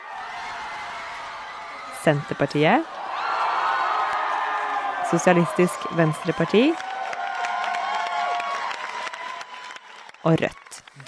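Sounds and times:
crowd cheering and shouting: 0:00.0 - 0:11.0
speech: 0:02.0 - 0:03.0, 0:05.1 - 0:06.9, 0:10.2 - 0:11.0.

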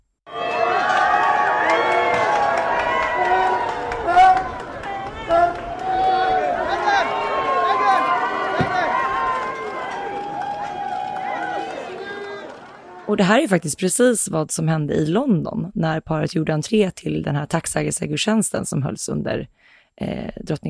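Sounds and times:
crowd cheering at entrance: 0:00.3 - 0:13.3
speech: 0:13.1 - 0:20.6.

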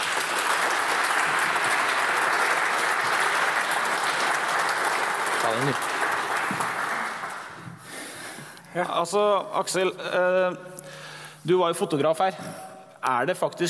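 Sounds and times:
audience applause: 0:00.0 - 0:08.1
speech: 0:05.5 - 0:05.9, 0:08.8 - 0:10.8, 0:11.4 - 0:13.6.

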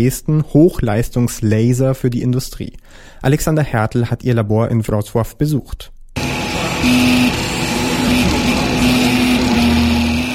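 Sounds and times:
speech: 0:00.0 - 0:08.8
3D printer layering dark blue plastic: 0:06.2 - 0:10.3.

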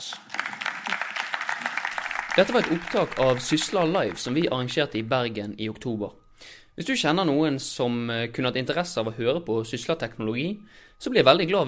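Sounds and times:
audience applause: 0:00.0 - 0:04.5
speech: 0:02.4 - 0:06.2, 0:06.8 - 0:11.6.

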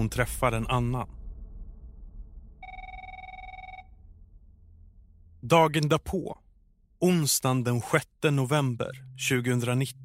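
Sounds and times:
speech: 0:00.0 - 0:01.2, 0:05.4 - 0:06.4, 0:07.0 - 0:10.0
telephone ringing: 0:02.6 - 0:03.9.

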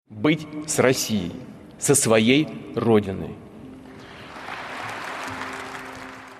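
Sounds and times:
speech: 0:00.2 - 0:03.4
large crowd applauding in a large hall: 0:03.9 - 0:06.3.

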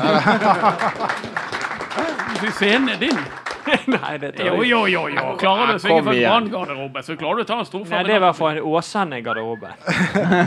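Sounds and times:
speech: 0:00.0 - 0:01.3, 0:02.0 - 0:10.4
audience applause: 0:00.0 - 0:04.2
laughter: 0:00.0 - 0:05.9, 0:09.3 - 0:10.4.

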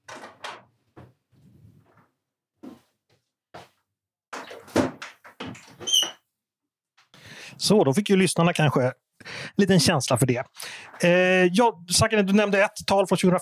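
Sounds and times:
window being closed with creaks, squeaks and soft knocks: 0:04.4 - 0:06.2
speech: 0:07.6 - 0:09.0, 0:09.6 - 0:13.4.

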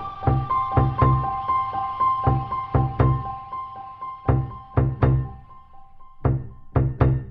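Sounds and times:
deep grand piano note muted with felt wedges: 0:00.2 - 0:01.5, 0:02.2 - 0:03.4, 0:04.3 - 0:07.2.

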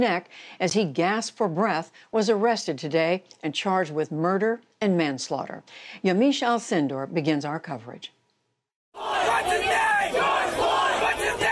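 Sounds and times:
speech: 0:00.0 - 0:08.2
protest crowd shouting and chanting: 0:09.0 - 0:11.5.

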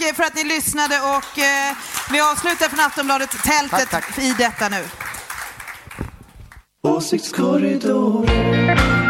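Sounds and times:
speech: 0:00.2 - 0:05.0, 0:07.0 - 0:09.0
audience applause: 0:01.1 - 0:06.6.

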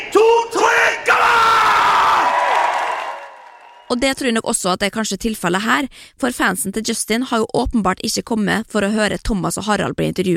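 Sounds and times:
studio audience cheering and whooping: 0:01.1 - 0:04.0
studio audience clapping: 0:02.2 - 0:04.1
speech: 0:03.9 - 0:10.3.

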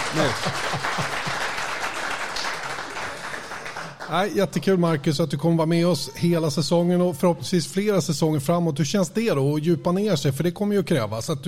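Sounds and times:
laughter: 0:00.0 - 0:01.9
person applauding in the room: 0:00.0 - 0:04.4
speech: 0:00.1 - 0:01.3, 0:04.1 - 0:11.4.

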